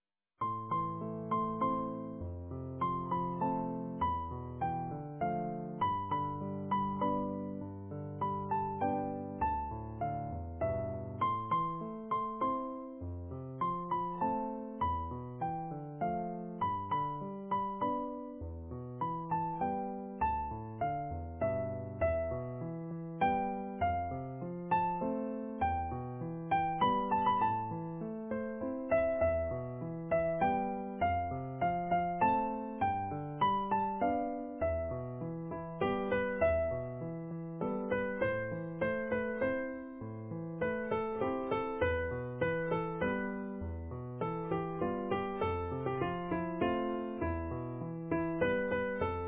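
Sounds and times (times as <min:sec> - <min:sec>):
easy piano: 0:00.4 - 0:49.2.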